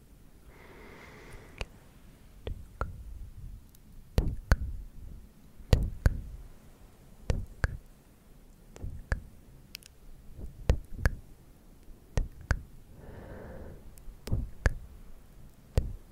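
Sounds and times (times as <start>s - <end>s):
breathy hissing: 0.4s - 1.8s, 12.8s - 14.2s
tongue clicks: 1.4s - 1.7s, 2.4s - 3.0s, 5.7s - 6.3s, 7.3s - 7.9s, 8.7s - 11.2s, 12.1s - 12.7s, 13.9s - 16.1s.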